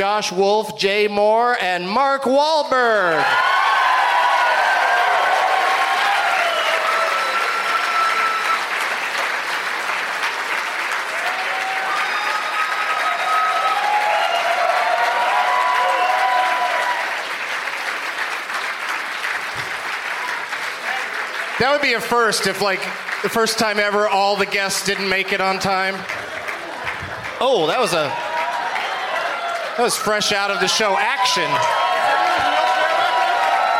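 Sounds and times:
speech: 0:00.0 - 0:03.6, 0:21.6 - 0:26.2, 0:27.4 - 0:28.2, 0:29.8 - 0:31.8
audience applause welcoming guests: 0:03.2 - 0:33.7.

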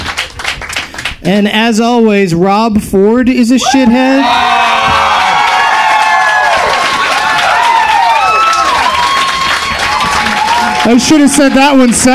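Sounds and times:
comedy club audience clapping: 0:00.0 - 0:01.3, 0:04.6 - 0:12.1
speech: 0:01.2 - 0:04.6, 0:10.9 - 0:12.1
comedy club audience whooping and shouting: 0:03.6 - 0:12.1.

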